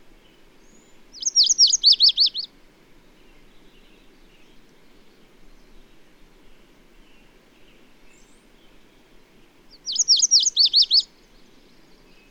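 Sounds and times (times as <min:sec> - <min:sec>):
bird song of rapid high sweeping notes: 0:01.2 - 0:02.5, 0:09.8 - 0:11.1.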